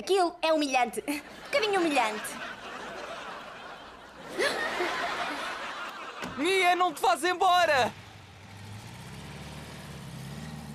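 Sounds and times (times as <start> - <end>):
speech: 0.0 - 2.4, 6.4 - 8.0
laughter: 1.0 - 7.7
car engine rumbling with a low droning hum: 6.2 - 10.7.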